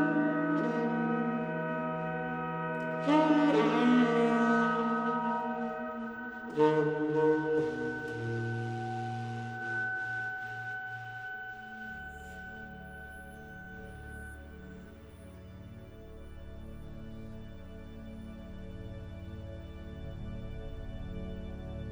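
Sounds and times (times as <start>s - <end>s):
noir saxophone ambience: 0.0s - 14.3s.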